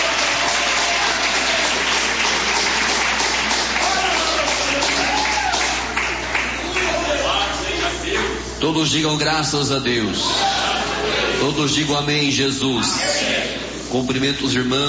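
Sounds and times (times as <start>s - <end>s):
audience clapping hands: 0.0s - 7.5s
speech: 8.6s - 10.4s, 11.4s - 14.8s
laughter: 10.2s - 11.7s.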